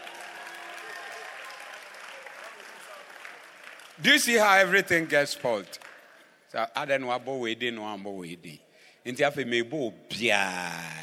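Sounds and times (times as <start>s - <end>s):
audience clapping: 0.0s - 6.4s
speech: 4.0s - 5.8s, 6.5s - 11.0s.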